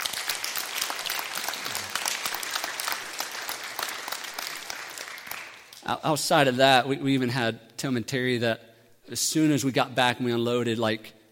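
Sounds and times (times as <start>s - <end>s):
audience applause: 0.0s - 5.8s
speech: 5.9s - 11.3s.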